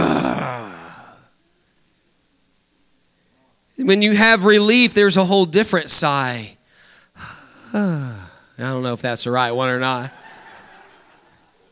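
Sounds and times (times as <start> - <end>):
person imitating an angry growl: 0.0 - 1.3, 7.2 - 8.4
speech: 3.9 - 6.6, 7.2 - 10.2
laughter: 10.0 - 11.7.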